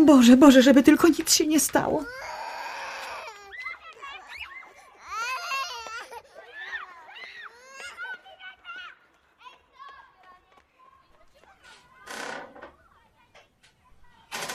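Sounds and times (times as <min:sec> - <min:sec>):
speech: 0:00.0 - 0:02.4
granddaughter crying: 0:02.0 - 0:08.2.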